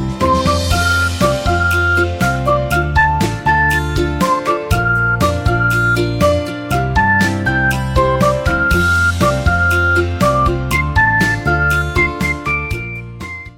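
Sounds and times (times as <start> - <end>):
beautiful car pop music ringtone: 0.2 - 13.5.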